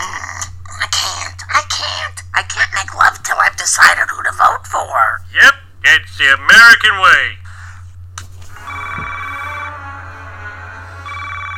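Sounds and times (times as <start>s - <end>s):
speech: 2.4s - 2.9s, 3.6s - 5.6s, 6.2s - 7.4s
telephone ringing in the White House: 8.6s - 11.5s.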